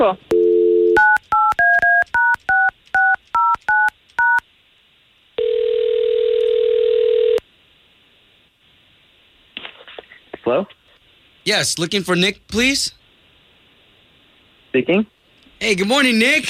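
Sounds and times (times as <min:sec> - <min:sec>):
speech: 0:00.0 - 0:00.3, 0:11.5 - 0:13.0, 0:14.8 - 0:16.4
telephone dialing tones: 0:00.3 - 0:04.4, 0:05.4 - 0:07.4.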